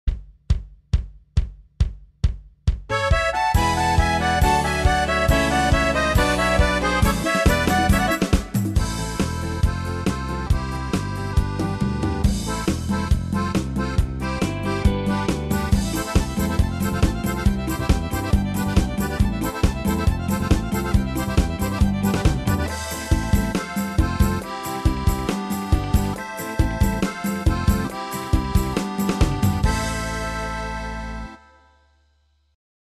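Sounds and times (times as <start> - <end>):
sertanejo universitário music: 2.2 - 31.9.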